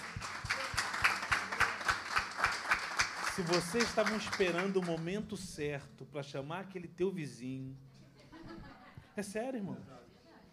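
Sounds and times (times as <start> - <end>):
audience applause: 0.0 - 5.1
speech: 3.4 - 7.9, 9.2 - 10.0
laughter: 8.1 - 9.1.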